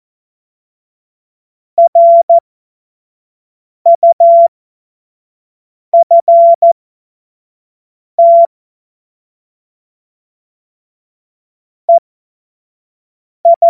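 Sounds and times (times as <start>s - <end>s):
CW Morse code beeps: 1.8s - 2.4s, 3.9s - 4.5s, 6.0s - 6.8s, 8.2s - 8.5s, 13.5s - 13.6s.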